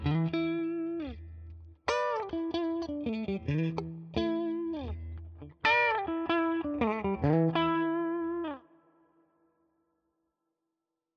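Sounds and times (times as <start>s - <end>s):
Ibanez AZ SDB clean guitar lick: 0.0s - 8.7s.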